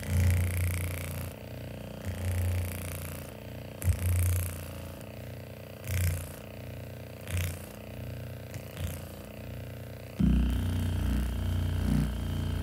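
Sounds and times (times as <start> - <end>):
handheld body massager motor humming and whining: 0.0 - 12.6.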